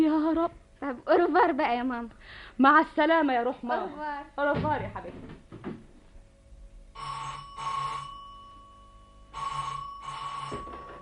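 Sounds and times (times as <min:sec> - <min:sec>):
speech: 0:00.0 - 0:05.4
telephone bell ringing: 0:07.0 - 0:10.9.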